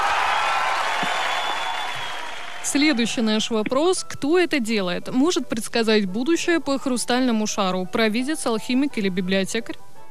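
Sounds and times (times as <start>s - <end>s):
quiz-show audience applause: 0.0s - 3.5s
speech: 2.7s - 9.9s.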